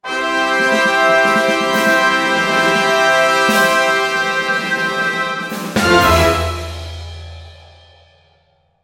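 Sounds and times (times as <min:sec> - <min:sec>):
victory jingle: 0:00.4 - 0:07.0.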